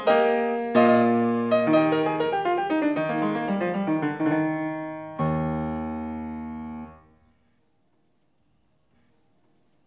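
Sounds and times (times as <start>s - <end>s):
classical keyboard prelude in E-flat major: 0.0s - 7.4s.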